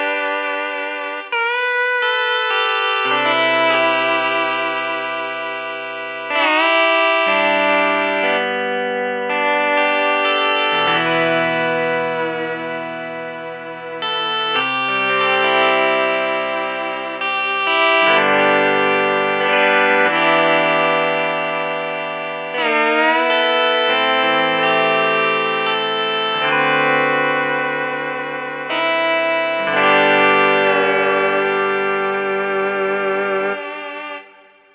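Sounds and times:
pedal steel guitar: 0.0s - 34.7s.

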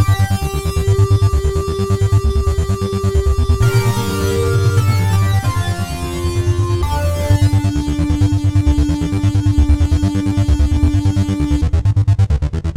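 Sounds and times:
Roland SC-880 factory lead patch: 0.0s - 12.6s.

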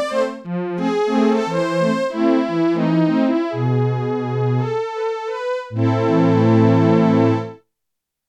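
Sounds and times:
Korg DW-8000 synthesizer strings: 0.0s - 7.6s.

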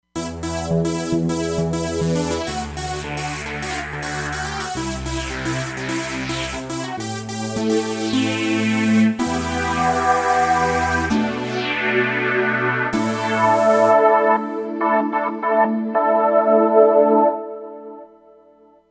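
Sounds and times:
Roland Fantom XR synthesizer: 0.0s - 18.9s.

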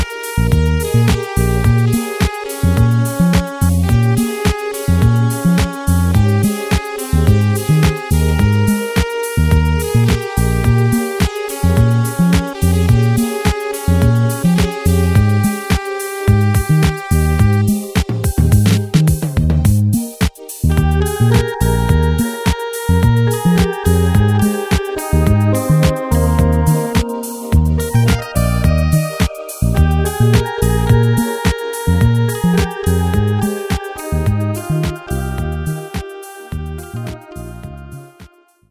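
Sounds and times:
disco automatic rhythm from an electronic keyboard: 0.0s - 38.6s.

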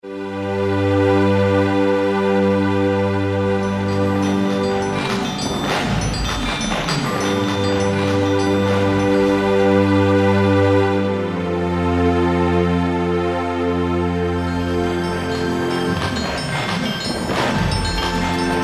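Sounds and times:
Yamaha TG33 synthesizer: 0.0s - 18.6s.

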